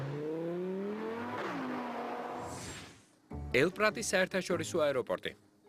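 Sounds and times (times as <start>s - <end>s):
small sports car engine roaring: 0.0s - 2.5s
speech: 3.6s - 5.4s.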